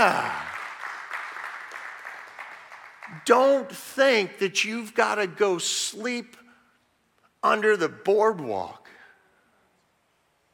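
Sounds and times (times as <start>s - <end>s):
speech: 0.0s - 0.5s, 3.1s - 6.4s, 7.4s - 8.8s
audience applause: 0.0s - 3.3s.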